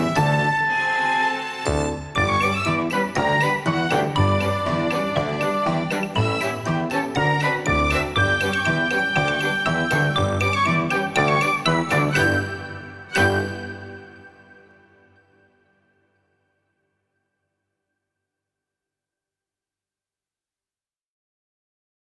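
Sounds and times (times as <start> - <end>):
ambient music: 0.0 - 16.2.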